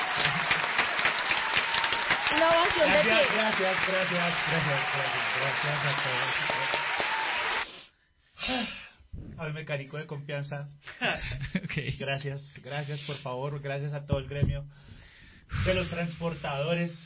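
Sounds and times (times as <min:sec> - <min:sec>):
audience applause: 0:00.0 - 0:07.8
speech: 0:02.4 - 0:07.0, 0:08.5 - 0:08.8, 0:09.4 - 0:17.0.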